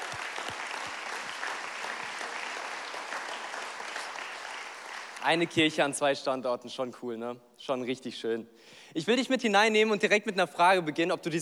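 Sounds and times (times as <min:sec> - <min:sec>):
audience applause: 0:00.0 - 0:05.4
speech: 0:05.2 - 0:11.3.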